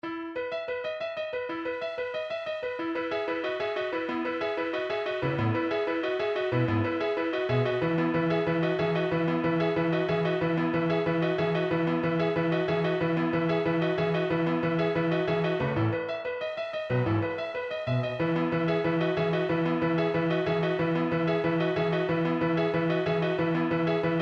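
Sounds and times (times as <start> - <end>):
instrumental music: 0.0 - 24.2.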